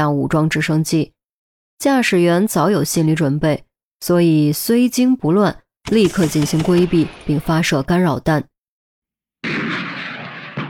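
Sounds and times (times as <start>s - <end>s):
speech: 0.0s - 1.2s, 1.8s - 8.5s
rocket exploding in midair: 9.4s - 10.6s.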